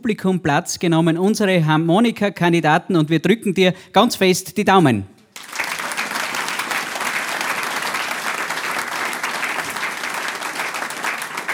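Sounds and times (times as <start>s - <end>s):
speech: 0.0s - 5.2s
applause: 5.4s - 11.5s.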